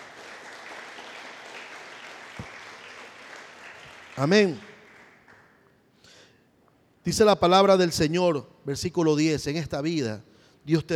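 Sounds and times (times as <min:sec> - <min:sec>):
audience applause: 0:00.0 - 0:05.5
speech: 0:04.2 - 0:04.7, 0:07.1 - 0:10.9.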